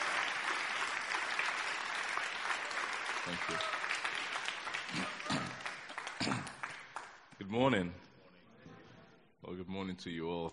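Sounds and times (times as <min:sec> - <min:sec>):
audience applause welcoming a speaker at a church community gathering: 0:00.0 - 0:07.2
speech: 0:03.3 - 0:03.8, 0:04.9 - 0:05.2, 0:07.5 - 0:08.0, 0:09.6 - 0:10.5.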